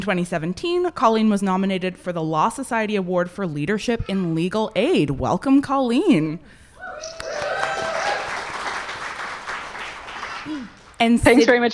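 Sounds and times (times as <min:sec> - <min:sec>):
speech: 0:00.0 - 0:07.5, 0:10.4 - 0:11.7
audience applause: 0:06.8 - 0:11.0.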